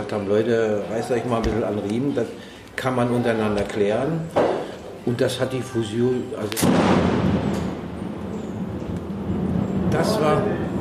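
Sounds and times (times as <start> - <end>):
speech: 0.1 - 7.4, 9.9 - 10.7
lightning strike thunderclap: 6.6 - 10.2.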